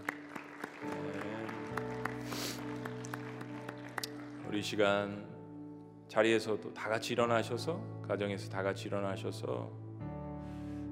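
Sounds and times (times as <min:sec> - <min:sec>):
audience applause: 0:00.0 - 0:04.8
speech: 0:04.5 - 0:05.3, 0:06.1 - 0:09.8.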